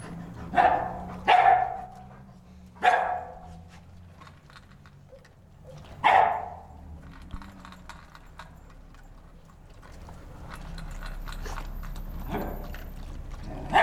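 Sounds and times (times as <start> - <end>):
dog giving sharp barks: 0.5 - 2.2, 2.8 - 3.7, 5.1 - 6.8, 13.6 - 13.8.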